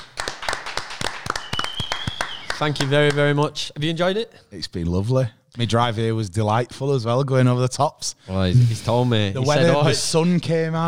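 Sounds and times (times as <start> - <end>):
round of applause: 0.0 - 3.4
speech: 2.6 - 10.8.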